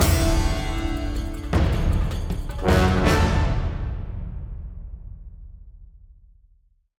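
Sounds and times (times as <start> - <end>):
percussion ending sting: 0.0 - 5.2.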